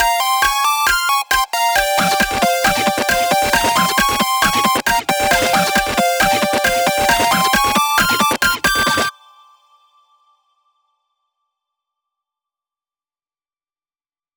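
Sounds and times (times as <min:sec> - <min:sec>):
8-bit EDM remix: 0:00.0 - 0:09.1.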